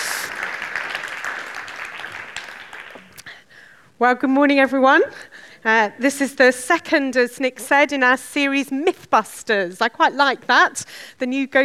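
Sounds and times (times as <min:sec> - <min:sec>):
audience applause: 0:00.0 - 0:03.2
speech: 0:04.0 - 0:11.6.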